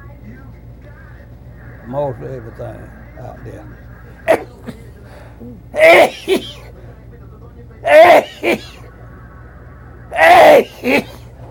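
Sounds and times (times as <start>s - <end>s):
speech: 1.9s - 4.5s, 5.4s - 6.6s, 7.8s - 8.6s
person sneezing: 4.3s - 4.8s, 5.8s - 6.7s, 7.9s - 8.8s, 10.2s - 11.3s.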